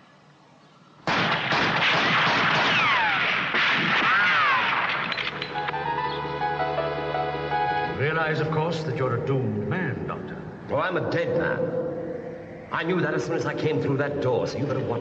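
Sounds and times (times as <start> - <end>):
rapid rifle gunfire: 1.1 - 5.0
sweeping whines: 5.4 - 14.9
speech: 8.2 - 11.9, 12.7 - 14.9.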